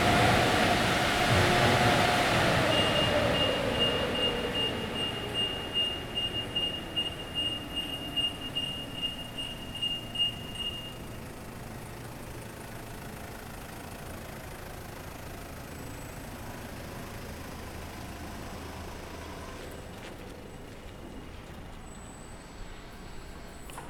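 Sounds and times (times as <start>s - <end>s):
car wash: 0.0s - 23.8s.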